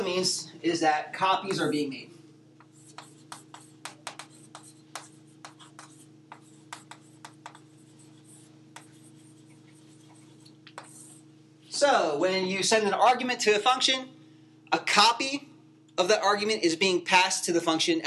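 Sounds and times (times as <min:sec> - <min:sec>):
low steady hum: 0:00.0 - 0:18.0
speech: 0:00.1 - 0:02.2, 0:11.8 - 0:14.1, 0:14.7 - 0:18.0
pen scratching on paper jotting down a note: 0:02.6 - 0:11.2.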